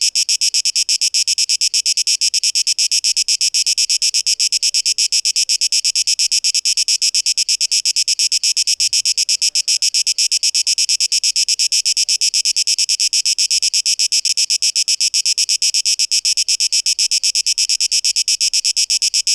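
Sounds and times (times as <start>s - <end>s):
cicada song: 0.0s - 19.3s.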